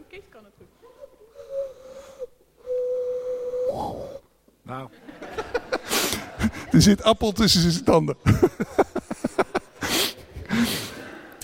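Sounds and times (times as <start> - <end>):
speech: 0.1 - 2.3, 4.7 - 5.1, 6.8 - 8.8
voice imitating a dove cooing: 0.9 - 4.2
laughter: 4.9 - 11.4.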